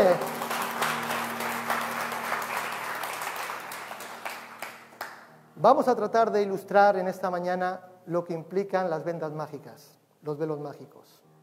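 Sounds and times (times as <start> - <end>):
applause: 0.0 - 5.3
speech: 5.6 - 11.2.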